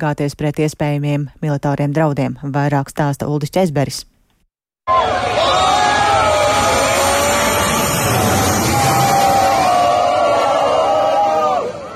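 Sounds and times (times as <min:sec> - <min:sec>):
speech: 0:00.0 - 0:04.1
crowd cheering and shouting: 0:04.9 - 0:11.9.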